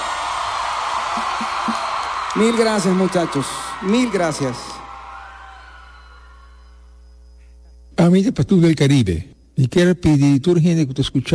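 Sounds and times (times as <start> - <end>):
audience applause: 0.0 - 6.7
speech: 2.4 - 4.7, 8.1 - 11.3.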